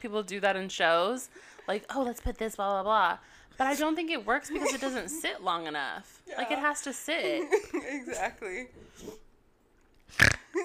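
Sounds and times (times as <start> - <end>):
speech: 0.0 - 9.2, 10.1 - 10.6
loud raspy snore: 10.1 - 10.5.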